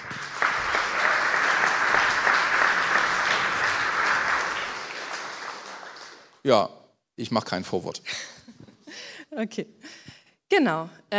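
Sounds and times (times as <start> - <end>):
audience applause: 0.0 - 6.5
speech: 6.4 - 8.3, 9.4 - 9.8, 10.5 - 11.1.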